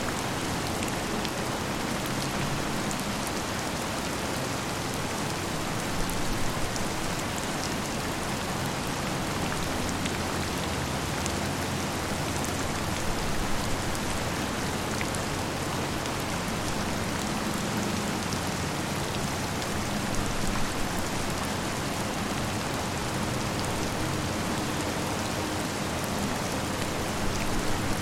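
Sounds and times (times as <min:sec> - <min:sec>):
heavy rainstorm in a city: 0:00.0 - 0:27.9.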